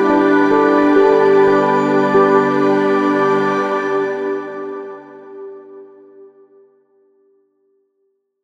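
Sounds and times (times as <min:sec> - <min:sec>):
relaxing chill out music: 0:00.0 - 0:06.7.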